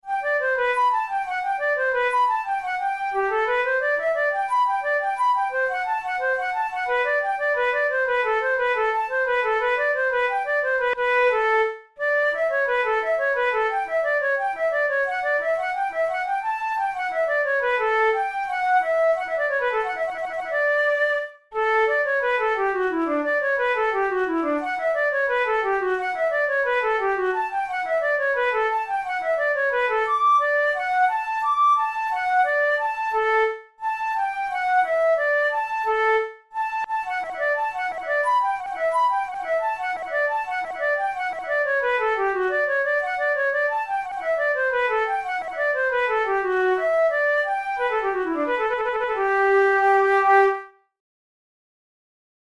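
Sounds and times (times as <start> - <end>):
transverse flute capriccio: 0.0 - 50.8.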